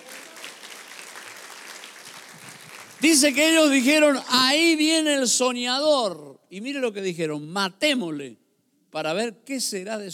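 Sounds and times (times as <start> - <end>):
audience applause: 0.0 - 3.5
speech: 3.0 - 10.1.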